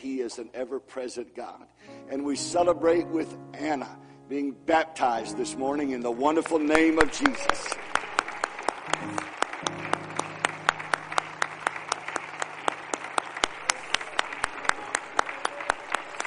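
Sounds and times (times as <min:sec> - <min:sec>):
speech: 0:00.1 - 0:07.9
audience applauding after a baptism: 0:06.1 - 0:16.2.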